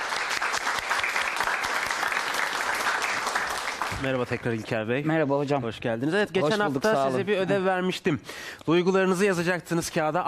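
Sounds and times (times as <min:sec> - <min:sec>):
audience applause: 0:00.0 - 0:04.7
speech: 0:04.0 - 0:10.2.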